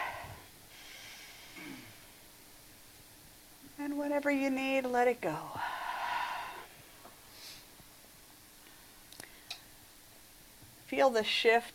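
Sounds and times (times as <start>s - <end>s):
slow deep breath in: 0.0s - 1.6s, 5.6s - 7.7s
speech: 4.1s - 5.7s, 10.9s - 11.7s.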